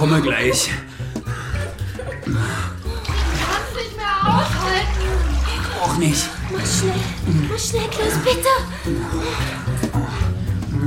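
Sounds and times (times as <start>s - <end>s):
speech: 0.0s - 1.0s, 2.2s - 2.8s, 6.0s - 10.1s
bath water sloshing and splashing: 0.0s - 10.8s.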